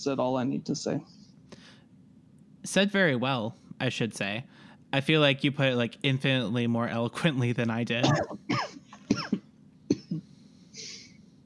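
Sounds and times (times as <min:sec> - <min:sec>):
speech: 0:00.0 - 0:01.2, 0:02.6 - 0:08.7
faint breathy exhale: 0:01.5 - 0:01.9, 0:04.5 - 0:04.9
person coughing fit: 0:08.0 - 0:11.1.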